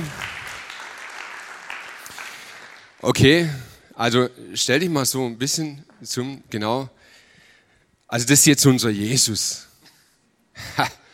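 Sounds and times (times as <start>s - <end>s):
audience applause as a performer is called onto a stage: 0.0s - 3.1s
speech: 3.0s - 7.1s, 8.1s - 9.7s, 10.6s - 11.0s.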